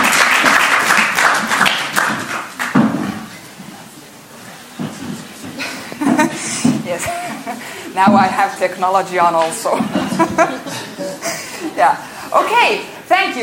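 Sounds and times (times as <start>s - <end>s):
room full of people applauding: 0.0s - 2.8s
laughter: 5.5s - 8.0s, 9.7s - 12.0s
speech: 7.0s - 10.8s, 11.8s - 13.4s.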